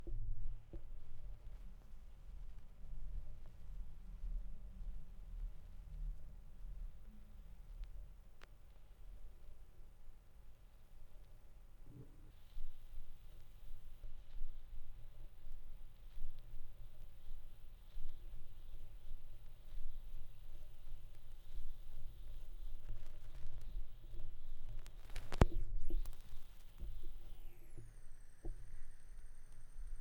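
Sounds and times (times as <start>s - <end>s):
vinyl record noise: 0.0s - 30.0s.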